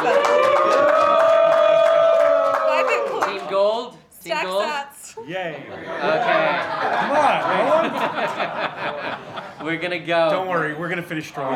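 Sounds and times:
audience whooping for Team Bitcoin: 0.0 - 3.6
audience clapping for Team Bitcoin at a Bitcoin versus Gold debate in Vegas: 0.0 - 3.8, 6.5 - 9.5
laughter: 5.3 - 10.8
speech: 7.5 - 11.5.

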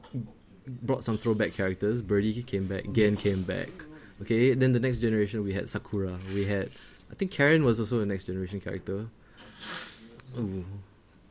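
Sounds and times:
speech: 0.1 - 10.9
person sniffling: 9.3 - 10.2.

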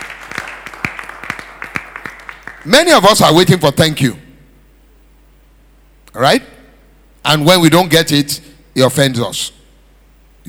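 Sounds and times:
audience applauding: 0.0 - 2.7
speech: 2.6 - 4.2, 6.2 - 6.5, 7.2 - 9.6.

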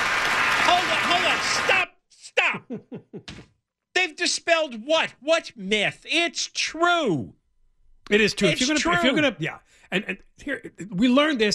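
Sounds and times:
crowd clapping: 0.0 - 1.9
speech: 0.7 - 2.8, 4.0 - 7.4, 8.1 - 11.5.

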